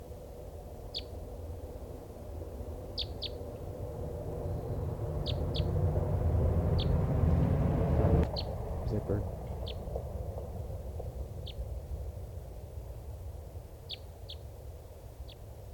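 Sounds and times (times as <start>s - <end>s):
low rumble: 1.3s - 14.8s
free-flying bird calling: 3.0s - 3.4s, 4.5s - 5.8s, 6.8s - 7.0s, 8.3s - 9.9s, 13.8s - 14.5s.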